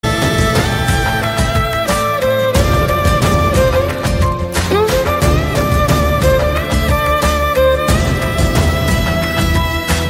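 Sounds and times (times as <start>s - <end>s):
Telugu love background music: 0.0s - 10.0s.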